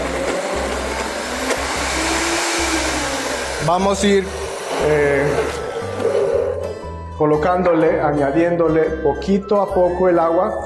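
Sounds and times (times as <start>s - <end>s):
blender liquefying ingredients with water: 0.0s - 6.4s
speech: 3.7s - 5.6s, 7.2s - 10.6s.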